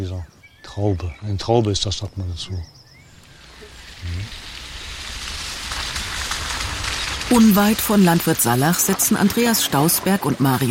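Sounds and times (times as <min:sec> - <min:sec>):
speech: 0:00.0 - 0:02.8, 0:07.3 - 0:10.6
steady rain falling outdoors in a valley: 0:03.1 - 0:10.6.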